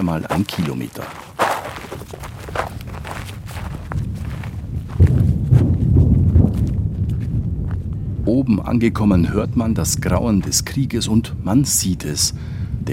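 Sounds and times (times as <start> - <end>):
speech: 0.0 - 1.3, 8.4 - 12.9
footsteps marching through thorny scrub: 0.0 - 7.8.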